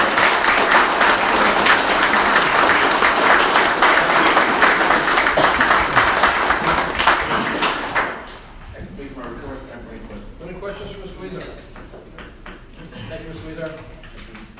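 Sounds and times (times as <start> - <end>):
audience applause: 0.0 - 8.4.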